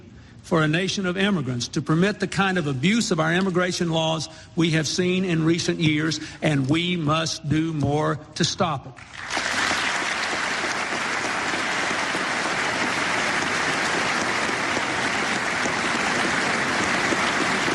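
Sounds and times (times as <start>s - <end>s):
speech: 0.5s - 9.3s
bipartisan round of applause in Congress: 9.0s - 17.7s.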